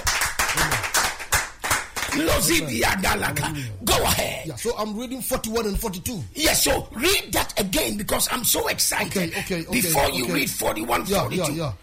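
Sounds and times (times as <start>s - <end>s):
church audience clapping for God: 0.0s - 2.7s
speech: 2.2s - 11.8s.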